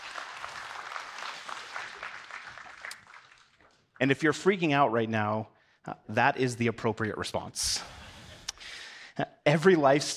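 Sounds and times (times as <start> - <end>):
audience applause: 0.0 - 3.8
speech: 4.0 - 8.0, 9.2 - 10.1.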